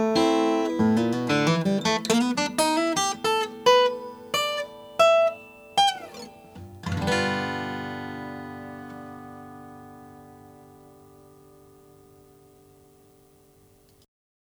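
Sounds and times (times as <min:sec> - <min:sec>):
Gibson National 1155 Blackburst guitar: 0:00.0 - 0:14.0.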